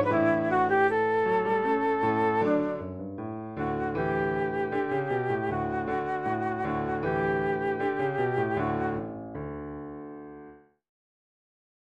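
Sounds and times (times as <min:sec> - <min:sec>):
flute: 0:00.0 - 0:03.0, 0:03.6 - 0:09.2
piano: 0:00.0 - 0:10.8.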